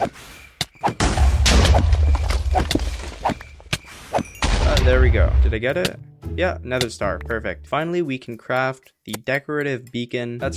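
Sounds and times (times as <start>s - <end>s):
dense noisy game background: 0.0s - 10.5s
bow shots in Minecraft hardcore mode: 0.8s - 3.4s
arrow impacts in Minecraft hardcore mode: 0.9s - 3.5s
speech: 4.9s - 10.5s.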